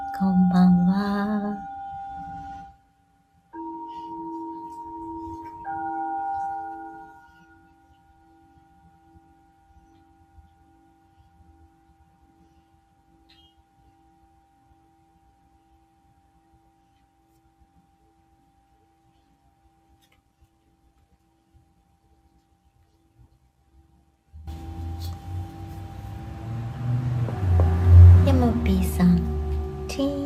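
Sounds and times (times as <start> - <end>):
singing bowl struck and ringing: 0.0 - 16.8, 24.5 - 30.2.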